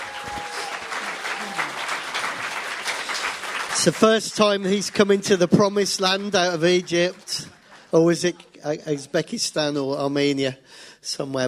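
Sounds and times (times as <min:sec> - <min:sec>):
crowd applauding: 0:00.0 - 0:08.4
speech: 0:03.8 - 0:11.4.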